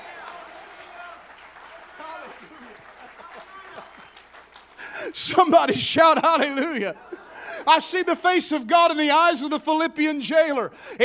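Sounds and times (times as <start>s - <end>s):
audience hand clapping: 0.0s - 5.6s
laughter: 2.0s - 4.1s, 4.8s - 8.3s
speech: 5.0s - 7.0s, 7.7s - 11.0s.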